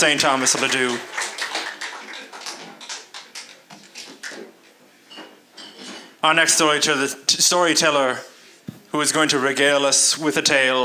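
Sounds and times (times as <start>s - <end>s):
speech: 0.0s - 1.4s, 6.2s - 8.3s, 8.9s - 10.8s
audience applause: 0.4s - 3.3s.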